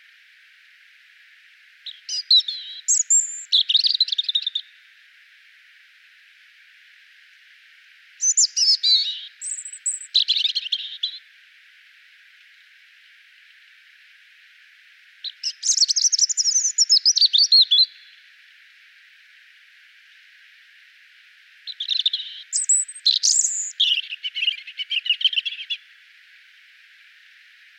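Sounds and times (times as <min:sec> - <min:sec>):
European robin singing: 0:01.9 - 0:04.7, 0:08.2 - 0:11.2, 0:15.2 - 0:18.2, 0:21.7 - 0:25.8.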